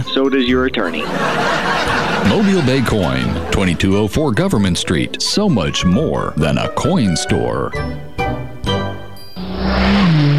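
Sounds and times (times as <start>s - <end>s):
speech: 0.2s - 8.0s
laughter: 0.9s - 4.2s
speeding car engine revving: 9.4s - 10.3s.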